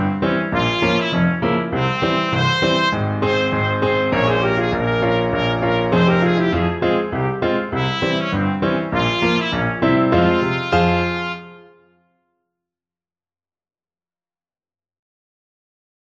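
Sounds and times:
trumpet playing: 0.5s - 12.1s.

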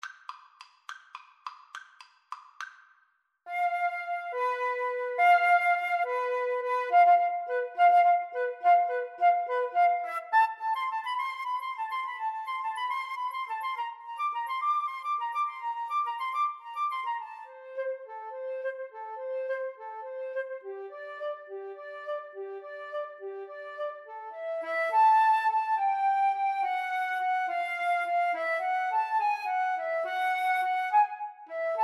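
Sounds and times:
flute duet: 3.5s - 31.8s.

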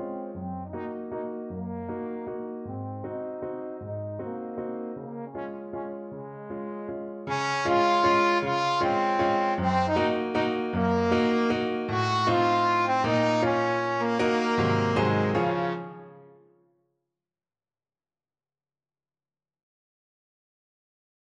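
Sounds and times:
trombone playing a waltz: 0.0s - 16.3s.

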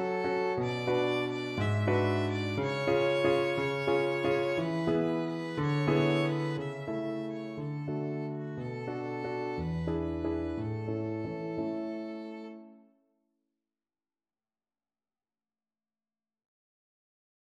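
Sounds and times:
violin playing a waltz: 0.0s - 12.7s.

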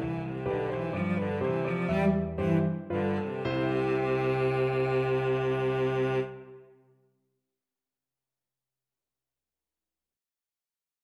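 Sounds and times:
cello playing a bourree: 0.0s - 6.7s.

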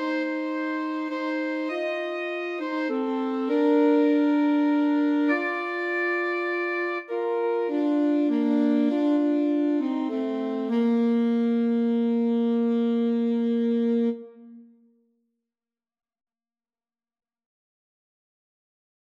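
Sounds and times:
alto saxophone duet: 0.0s - 14.9s.

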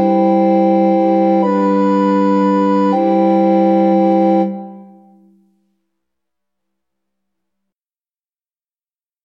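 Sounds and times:
recorder quartet playing: 0.0s - 5.2s.

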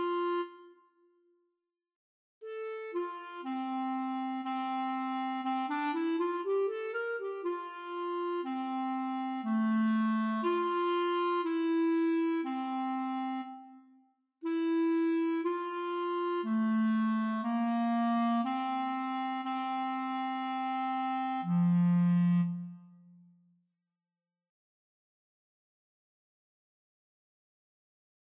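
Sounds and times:
clarinet duet: 0.0s - 1.0s, 2.4s - 23.3s.

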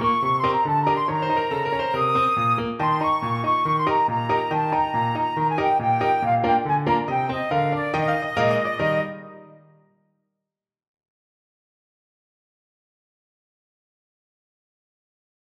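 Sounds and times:
flute playing a bulgar: 0.0s - 9.9s.

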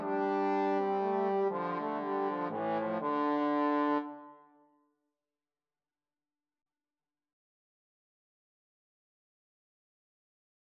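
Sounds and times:
trombone duet: 0.0s - 4.3s.

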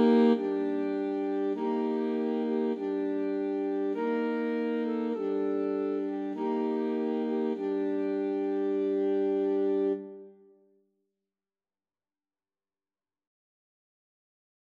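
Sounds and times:
funeral march played by alto sax quartet: 0.0s - 10.2s.

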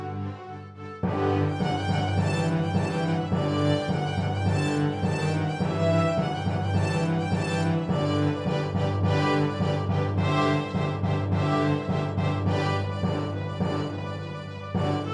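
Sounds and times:
flute playing: 0.0s - 15.1s.

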